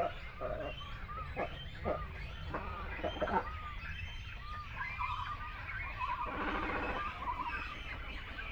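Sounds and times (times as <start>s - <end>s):
great cormorants croaking: 0.0s - 8.4s.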